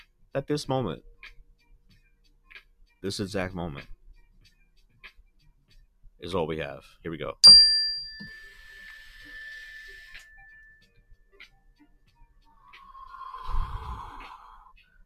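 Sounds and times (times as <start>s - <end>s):
speech: 0.4s - 1.4s, 3.0s - 4.0s, 6.2s - 8.4s
mindfulness bell ringing: 7.4s - 11.0s.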